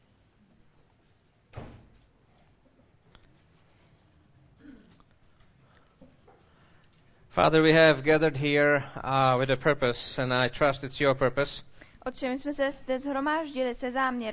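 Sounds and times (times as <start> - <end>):
door or window shutting at a church gathering: 1.5 - 2.0
speech: 7.4 - 14.3.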